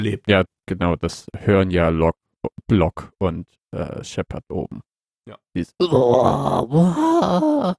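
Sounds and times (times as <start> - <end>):
speech: 0.0 - 7.7
person imitating a roar: 5.8 - 7.7.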